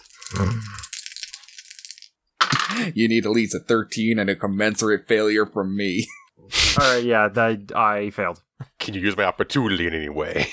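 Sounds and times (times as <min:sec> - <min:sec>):
dice clattering across a hard surface: 0:00.0 - 0:02.8
speech: 0:00.3 - 0:00.8, 0:02.8 - 0:10.5.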